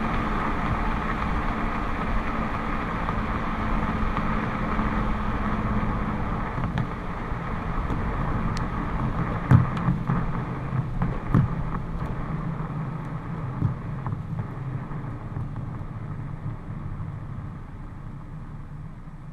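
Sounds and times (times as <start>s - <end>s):
car tyre noise accelerating and decelerating: 0.0s - 19.3s.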